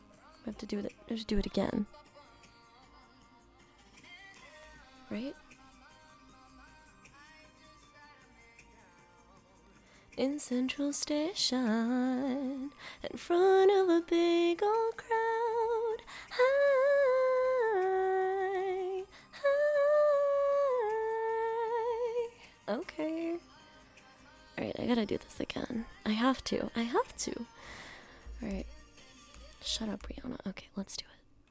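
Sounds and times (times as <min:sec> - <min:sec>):
person singing a blooper: 0:00.0 - 0:30.2.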